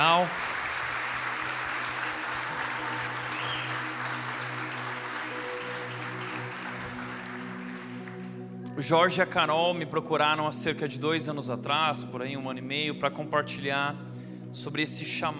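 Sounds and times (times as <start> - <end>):
speech: 0.0 - 0.5, 8.8 - 15.3
audience applause: 0.0 - 8.4.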